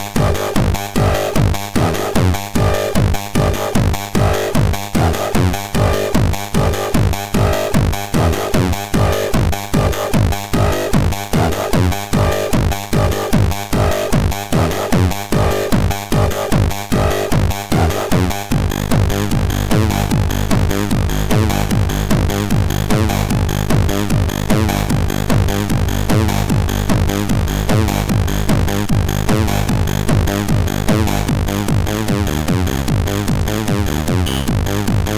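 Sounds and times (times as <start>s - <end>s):
buzzer on MOS6581R4 SID chip: 0.2s - 35.1s.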